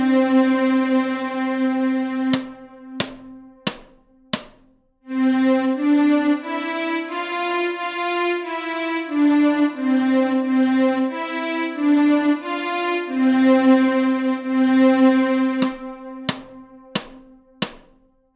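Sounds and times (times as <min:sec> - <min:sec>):
violin strings: 0:00.0 - 0:18.3.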